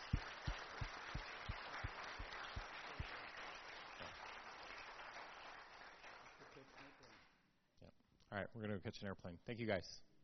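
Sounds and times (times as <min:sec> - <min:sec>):
audience applause: 0:00.0 - 0:07.3
speech: 0:08.3 - 0:10.1.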